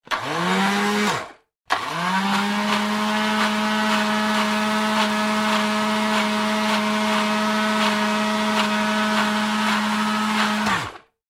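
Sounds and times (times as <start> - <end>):
blender: 0.0 - 11.2
juicer: 0.0 - 11.2.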